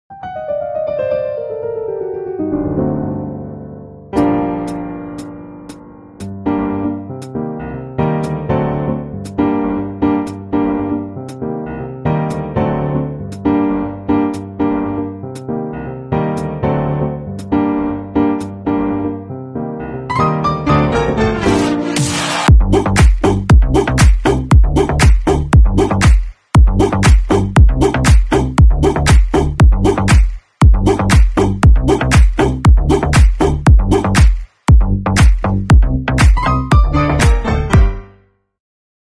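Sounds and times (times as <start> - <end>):
instrumental music: 0.1 - 38.3.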